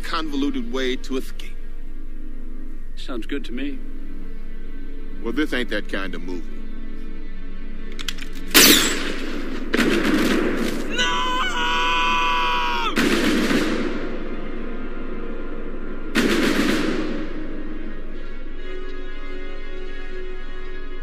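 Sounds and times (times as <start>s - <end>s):
speech: 0.1s - 1.5s, 3.0s - 4.2s, 5.2s - 6.6s
gunshots in a violent movie scene: 8.5s - 11.1s, 12.9s - 14.4s, 16.1s - 17.9s
harsh scream: 10.9s - 13.0s.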